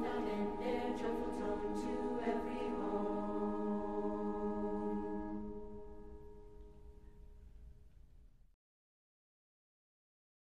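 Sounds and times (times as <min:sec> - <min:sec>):
music track at 160 bpm: 0:00.0 - 0:07.5.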